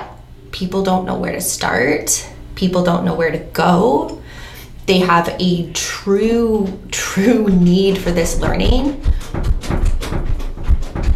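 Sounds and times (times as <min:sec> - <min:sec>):
speech: 0:00.6 - 0:09.2
door rattling as it is jiggled from the other side: 0:07.4 - 0:11.1.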